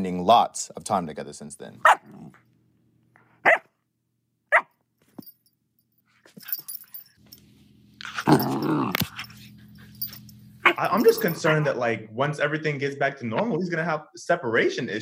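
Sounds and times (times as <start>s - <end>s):
speech: 0.0s - 2.3s, 10.7s - 15.0s
low steady hum: 0.0s - 15.0s
black lab terrier mix puppy barking and growling: 1.8s - 2.4s, 3.4s - 3.8s, 4.5s - 4.7s, 8.0s - 9.3s, 10.0s - 11.7s.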